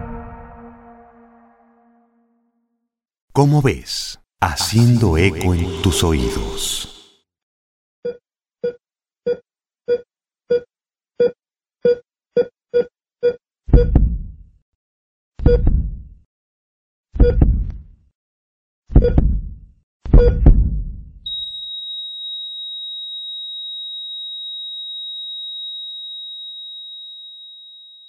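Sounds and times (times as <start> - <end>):
speech: 3.4 - 6.9
hospital heart monitor beeping then flatline: 11.2 - 14.1, 15.5 - 15.8, 17.2 - 17.6, 19.0 - 19.3, 20.1 - 20.6, 21.3 - 22.4
deep heartbeat thumps: 13.7 - 14.3, 15.5 - 16.0, 17.2 - 17.8, 18.9 - 19.5, 20.1 - 20.9.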